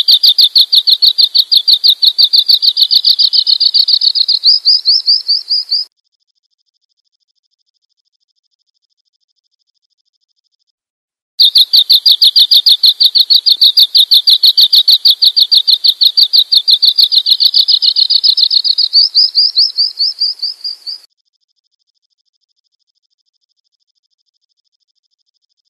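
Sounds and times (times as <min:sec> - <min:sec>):
bird chirping: 0:00.0 - 0:05.9, 0:11.4 - 0:21.1.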